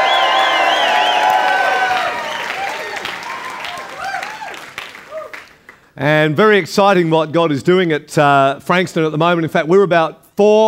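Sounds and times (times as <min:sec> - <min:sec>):
audience cheering: 0:00.0 - 0:05.6
speech: 0:06.0 - 0:10.6.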